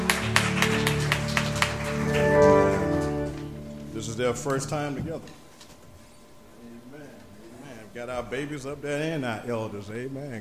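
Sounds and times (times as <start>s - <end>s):
audience hand clapping in rhythmic beat: 0.0s - 4.7s
sustained keyboard chords: 0.0s - 5.2s
speech: 4.2s - 5.4s, 8.0s - 10.3s.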